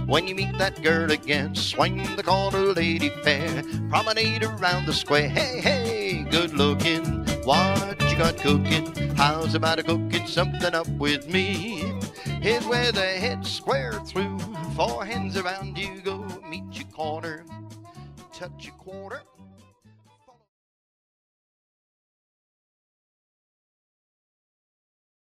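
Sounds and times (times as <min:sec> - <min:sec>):
square dance music: 0:00.0 - 0:19.2
person singing: 0:00.0 - 0:19.3.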